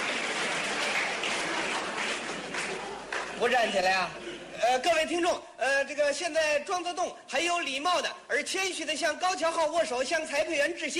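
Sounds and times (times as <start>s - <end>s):
stadium crowd cheering at a table tennis match: 0.0s - 3.9s
speech: 3.4s - 10.9s.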